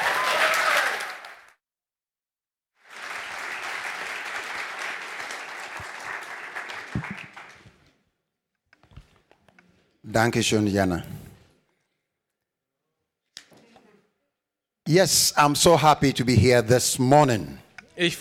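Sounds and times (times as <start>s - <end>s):
audience applause at a church gathering welcoming a speaker: 0.0s - 1.6s, 2.8s - 8.0s
speech: 10.2s - 11.2s, 14.9s - 18.1s.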